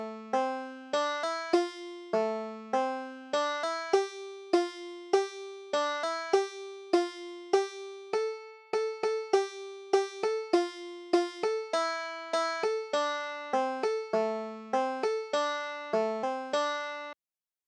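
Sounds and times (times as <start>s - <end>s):
banjo tune: 0.0s - 17.2s.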